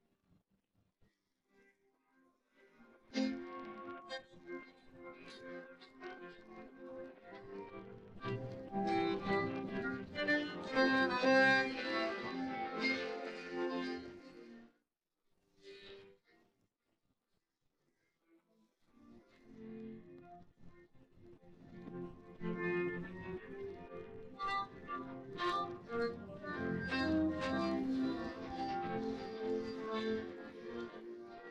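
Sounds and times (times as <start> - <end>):
guitar: 2.8 - 14.6, 19.0 - 31.4.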